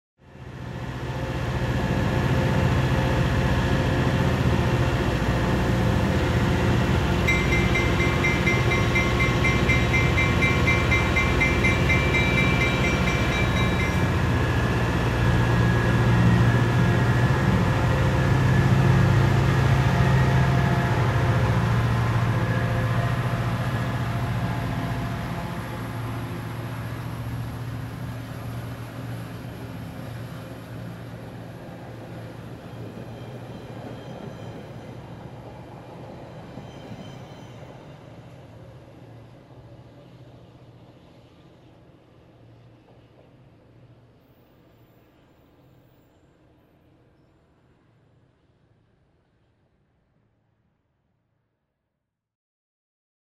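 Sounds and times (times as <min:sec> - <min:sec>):
locomotive departing: 0:00.4 - 0:39.9.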